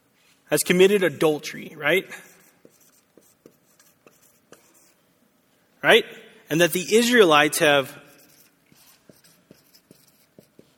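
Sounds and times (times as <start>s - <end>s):
soft steady hiss: 0.0s - 10.7s
speech: 0.5s - 2.3s, 5.8s - 8.0s
pen strokes writing notes by hand: 2.2s - 5.0s, 8.1s - 10.7s.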